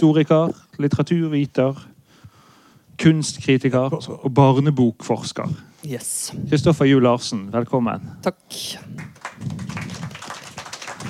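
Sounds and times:
speech: 0.0 - 1.9, 3.0 - 9.7
small group clapping: 8.9 - 11.0.

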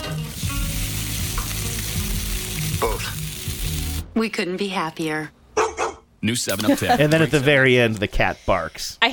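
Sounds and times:
steak sizzling on a grill: 0.2 - 4.0
speech: 2.8 - 3.2, 4.2 - 5.4, 6.2 - 9.1.

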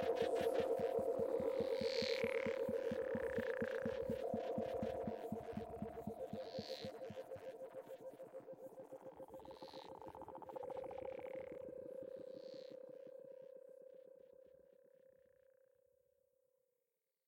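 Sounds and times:
frogs calling: 0.0 - 7.4, 9.4 - 12.8.

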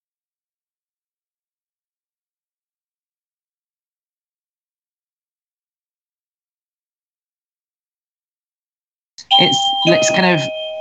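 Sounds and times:
doorbell ringing: 9.2 - 10.7
speech: 9.3 - 10.6.

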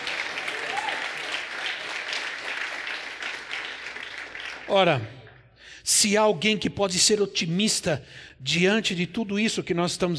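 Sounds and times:
audience applause: 0.0 - 5.0
speech: 4.7 - 5.2, 5.8 - 10.1.

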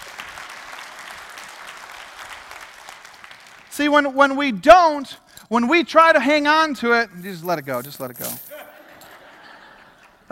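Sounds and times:
crowd applauding: 0.0 - 3.8
speech: 3.8 - 8.5
laughter: 8.5 - 10.3.

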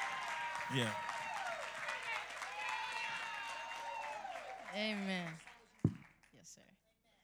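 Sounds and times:
audience clapping in praise: 0.0 - 6.3
speech: 0.7 - 1.1, 4.7 - 5.5, 6.5 - 6.8.

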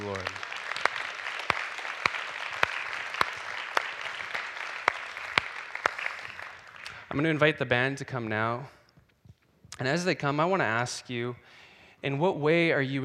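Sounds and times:
audience clapping: 0.0 - 7.5
speech: 7.2 - 8.8, 9.8 - 13.0.

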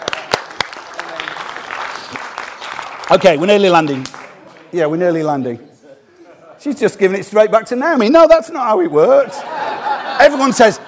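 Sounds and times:
group clapping: 0.0 - 5.0
speech: 3.1 - 5.7, 6.6 - 9.5, 10.2 - 10.8
laughter: 9.0 - 10.8.

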